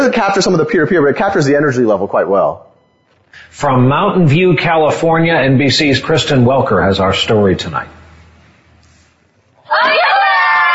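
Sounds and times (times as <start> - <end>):
speech: 0.0 - 2.7, 3.5 - 8.0
fifth graders in a math class cheering: 9.7 - 10.7.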